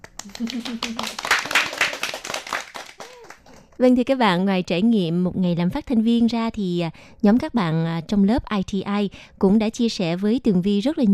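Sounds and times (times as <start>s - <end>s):
applause: 0.0s - 3.8s
speech: 0.3s - 1.7s, 3.8s - 11.1s.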